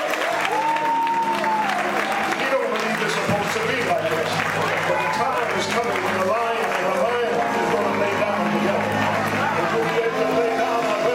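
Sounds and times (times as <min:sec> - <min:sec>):
audience hand clapping: 0:00.0 - 0:11.1
sustained organ-like chord: 0:05.4 - 0:11.1.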